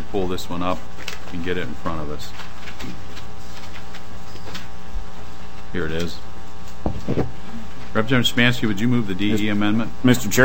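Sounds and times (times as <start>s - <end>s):
speech: 0.1s - 3.0s, 5.7s - 6.3s, 7.1s - 10.4s
paper rustling: 0.8s - 4.7s.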